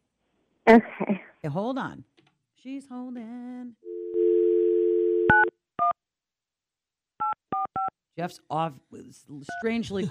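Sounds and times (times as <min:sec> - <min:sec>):
speech: 0:00.7 - 0:03.9, 0:08.2 - 0:10.0
dial tone: 0:03.8 - 0:05.5
touch-tone beeps: 0:05.3 - 0:06.0, 0:09.5 - 0:10.0.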